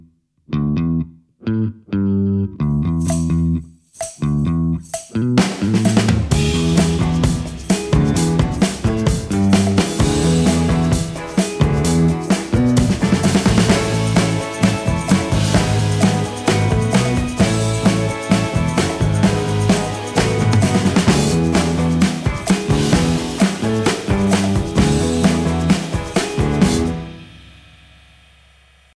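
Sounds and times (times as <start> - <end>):
ping pong music: 0.5 - 28.9.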